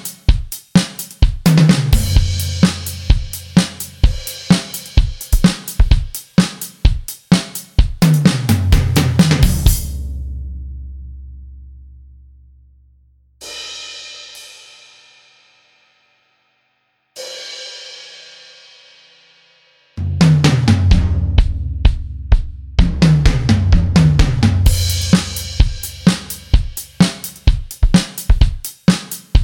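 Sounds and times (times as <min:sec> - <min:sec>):
drum track: 0:00.0 - 0:10.8, 0:20.0 - 0:29.4.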